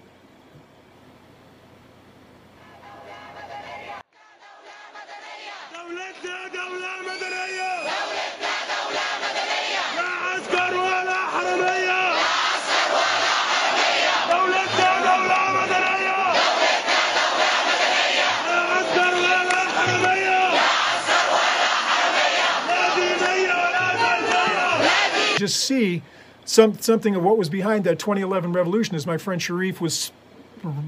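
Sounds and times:
large crowd shouting and chanting in Tahrir Square: 2.9s - 25.4s
speech: 25.4s - 30.8s.

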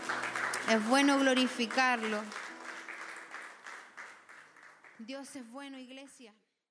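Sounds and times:
audience applause: 0.0s - 5.1s
speech: 0.7s - 2.4s, 5.0s - 6.4s.

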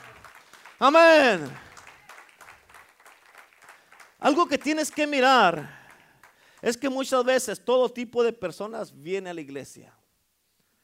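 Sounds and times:
audience applause: 0.0s - 6.5s
speech: 0.8s - 1.6s, 4.2s - 5.8s, 6.6s - 10.0s.

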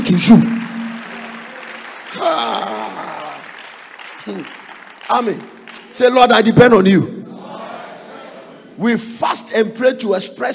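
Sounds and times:
speech: 0.0s - 0.6s, 4.2s - 7.2s, 8.8s - 10.5s
audience clapping: 0.0s - 6.6s.

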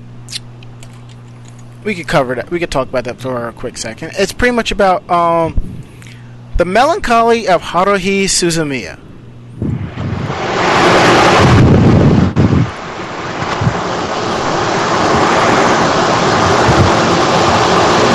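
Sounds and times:
speech: 1.8s - 5.7s, 6.6s - 9.0s
jet flying overhead: 9.6s - 18.1s.

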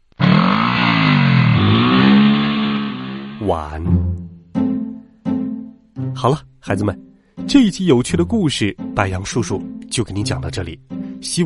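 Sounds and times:
snowmobile engine revving: 0.0s - 3.6s
speech: 3.5s - 4.0s, 6.2s - 11.4s.

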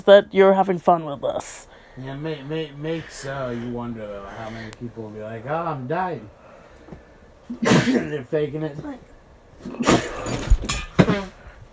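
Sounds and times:
speech: 0.0s - 6.4s, 7.5s - 11.2s
sneeze: 7.5s - 8.1s, 9.6s - 10.4s.

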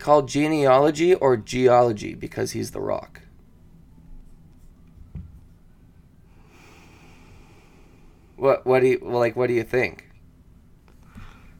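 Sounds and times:
speech: 0.0s - 3.2s, 8.4s - 10.1s
low hiss: 0.0s - 11.5s
heavy breathing into a microphone: 6.3s - 8.4s.

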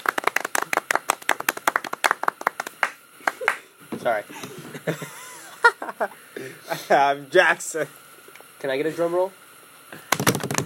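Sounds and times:
round of applause: 0.0s - 3.6s, 10.1s - 10.6s
speech: 4.0s - 5.2s, 6.0s - 8.0s, 8.6s - 9.4s
laughter: 4.4s - 6.9s.

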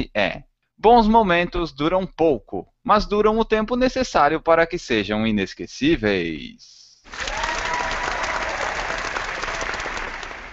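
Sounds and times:
speech: 0.0s - 7.4s
crowd applauding: 7.1s - 10.5s.

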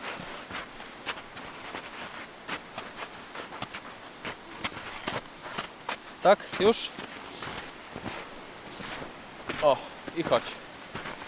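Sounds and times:
footsteps entering through snow: 0.0s - 11.2s
shoes being knocked clean: 1.1s - 8.2s
speech: 6.2s - 7.0s, 9.6s - 10.6s.

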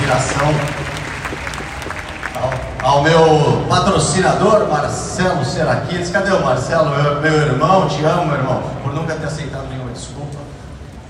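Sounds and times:
audience applause: 0.0s - 3.3s
speech: 0.1s - 1.0s, 2.8s - 10.1s.

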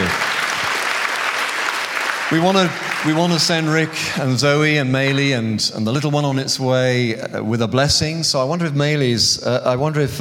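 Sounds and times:
audience applause: 0.0s - 4.4s
speech: 2.3s - 10.1s.

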